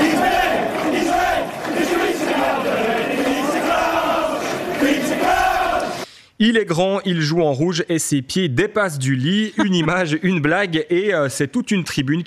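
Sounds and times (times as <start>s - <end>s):
large crowd of football supporters chanting in unison in stands: 0.0s - 6.0s
speech: 6.4s - 12.2s.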